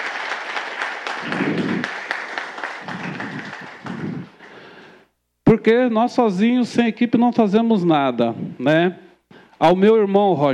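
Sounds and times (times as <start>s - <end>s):
audience applause: 0.0s - 4.6s
speech: 5.5s - 9.0s, 9.6s - 10.5s.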